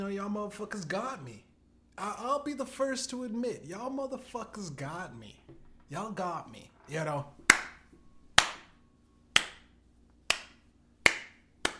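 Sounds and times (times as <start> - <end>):
speech: 0.0 - 7.4
clapping: 10.3 - 11.7.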